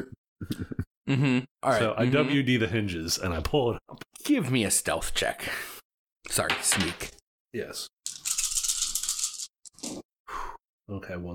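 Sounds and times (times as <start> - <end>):
speech: 0.0 - 8.3, 9.9 - 11.3
dice being rolled: 8.0 - 10.0.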